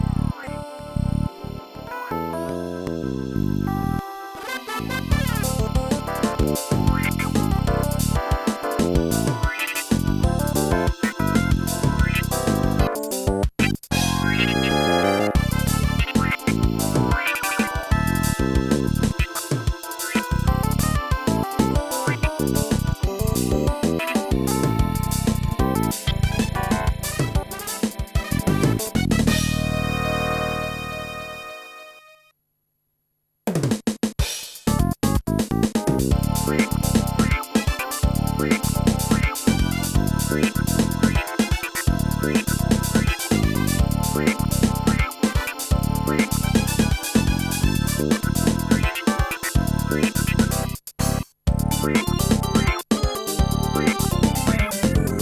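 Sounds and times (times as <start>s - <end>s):
mod acid jazz: 0.0s - 31.2s, 34.7s - 55.2s.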